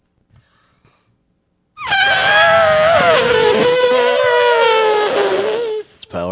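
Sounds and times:
person's voice imitating an elephant trumpeting: 0:01.8 - 0:06.2.

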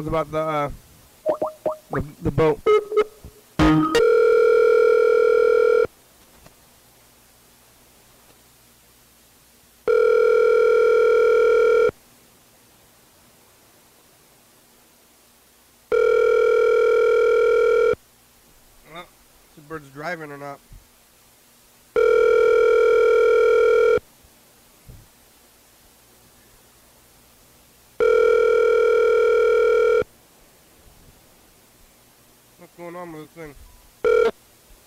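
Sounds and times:
speech: 0:00.0 - 0:00.8, 0:01.9 - 0:03.0
voice murmuring: 0:01.3 - 0:03.2
telephone ringback tone on an outgoing call: 0:02.7 - 0:05.9, 0:09.9 - 0:11.9, 0:15.9 - 0:18.0, 0:22.0 - 0:24.0, 0:28.0 - 0:30.1, 0:34.0 - 0:34.4.

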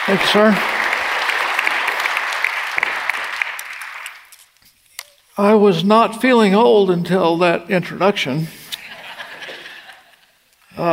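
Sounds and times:
audience applause welcoming a pastor at a church service: 0:00.0 - 0:04.4
speech: 0:00.1 - 0:00.7, 0:05.4 - 0:08.6, 0:10.8 - 0:10.9
laughter: 0:08.7 - 0:10.3.

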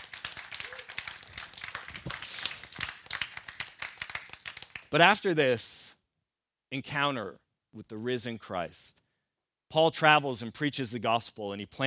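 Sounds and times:
audience applause: 0:00.0 - 0:04.8
speech: 0:04.9 - 0:05.8, 0:06.7 - 0:09.0, 0:09.7 - 0:11.8.

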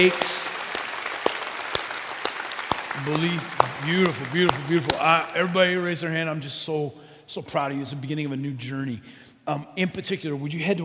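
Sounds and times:
speech: 0:00.0 - 0:00.3, 0:03.0 - 0:10.8
audience applause: 0:00.0 - 0:05.9.

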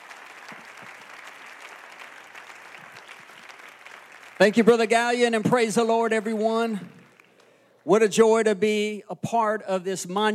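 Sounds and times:
audience clapping at a church commencement service at the Temple of Pentecost in Raleigh, North Carolina: 0:00.0 - 0:07.8
speech: 0:04.4 - 0:07.0, 0:07.9 - 0:10.3.

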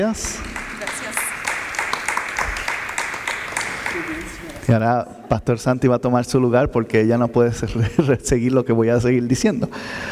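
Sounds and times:
speech: 0:00.0 - 0:00.5, 0:03.9 - 0:10.1
audience applause: 0:00.0 - 0:04.8
laughter: 0:07.7 - 0:08.4.

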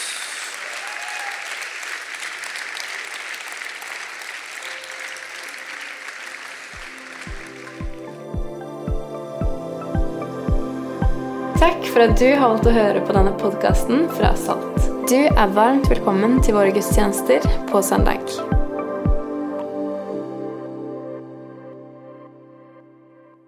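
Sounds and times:
audience applause: 0:00.0 - 0:08.4
music with steady beats and a held chord: 0:06.8 - 0:19.8
speech: 0:11.6 - 0:18.6.

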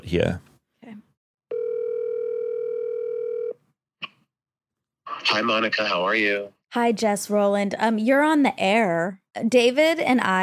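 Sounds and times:
speech: 0:00.0 - 0:00.5, 0:05.3 - 0:10.4
phone call ringing on speakerphone: 0:01.5 - 0:03.6.

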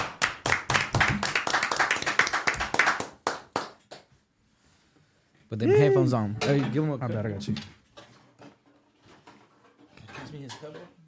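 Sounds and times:
people clapping: 0:00.0 - 0:04.1
speech: 0:05.5 - 0:07.8, 0:10.5 - 0:11.0.

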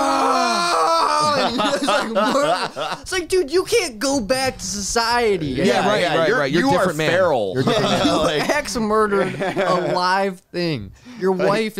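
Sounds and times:
man imitating a barbarian screaming: 0:00.0 - 0:01.6
laughter: 0:00.8 - 0:03.1, 0:07.6 - 0:10.2
speech: 0:01.5 - 0:11.7.

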